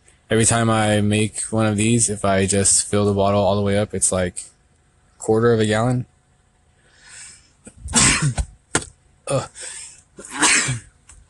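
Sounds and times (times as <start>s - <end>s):
speech: 0.3s - 4.6s, 5.2s - 6.1s, 7.9s - 8.5s, 9.3s - 9.8s
person sneezing: 7.9s - 8.5s, 9.3s - 10.9s.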